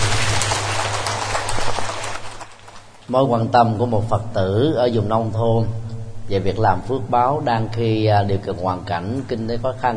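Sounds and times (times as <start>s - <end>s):
audience applause: 0.0s - 3.0s
speech: 3.1s - 9.9s.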